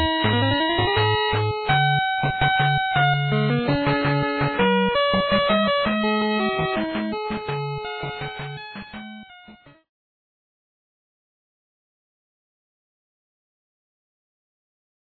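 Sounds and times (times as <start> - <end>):
background music: 0.0 - 9.8.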